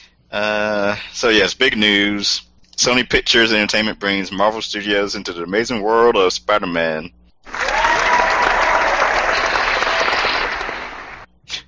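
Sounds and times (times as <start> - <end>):
speech: 0.3 - 7.2
stuttered applause: 7.5 - 11.3.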